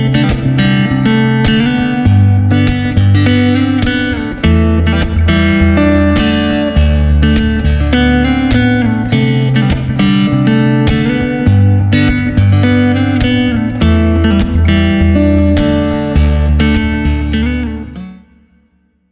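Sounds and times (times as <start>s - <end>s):
western guitar: 0.0s - 19.0s.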